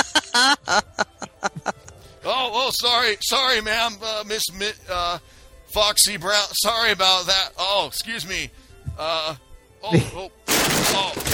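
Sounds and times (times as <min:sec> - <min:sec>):
laughter: 0:00.0 - 0:01.9, 0:09.9 - 0:10.2
speech: 0:00.4 - 0:01.0, 0:02.7 - 0:11.3
cart being knocked over: 0:10.5 - 0:11.3.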